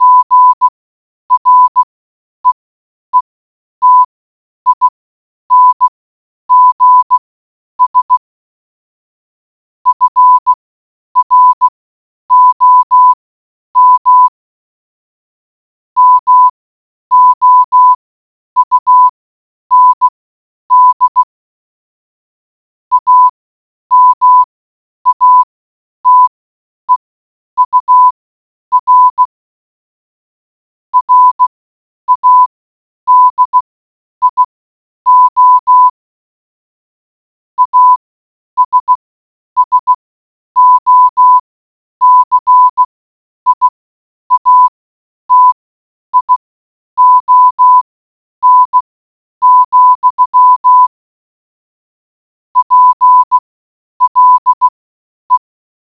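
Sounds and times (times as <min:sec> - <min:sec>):
morse code beeps: 0:00.0 - 0:00.7, 0:01.3 - 0:02.6, 0:03.2 - 0:04.1, 0:04.7 - 0:04.9, 0:05.5 - 0:05.9, 0:06.5 - 0:07.2, 0:07.8 - 0:08.2, 0:09.9 - 0:10.6, 0:11.2 - 0:11.7, 0:12.3 - 0:13.2, 0:13.8 - 0:14.3, 0:16.0 - 0:16.5, 0:17.1 - 0:18.0, 0:18.6 - 0:19.1, 0:19.7 - 0:21.3, 0:22.9 - 0:23.3, 0:23.9 - 0:24.5, 0:25.1 - 0:26.3, 0:26.9 - 0:29.4, 0:31.0 - 0:31.5, 0:32.1 - 0:32.5, 0:33.1 - 0:34.5, 0:35.1 - 0:36.0, 0:37.6 - 0:38.0, 0:38.6 - 0:39.0, 0:39.6 - 0:40.0, 0:40.6 - 0:42.9, 0:43.5 - 0:45.6, 0:46.2 - 0:46.4, 0:47.0 - 0:50.9, 0:52.6 - 0:55.5.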